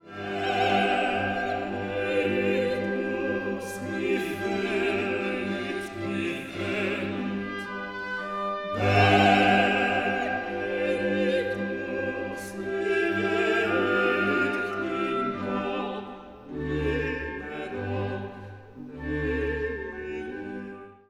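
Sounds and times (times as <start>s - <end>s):
choral piece sung loud and soft: 0.0s - 21.0s.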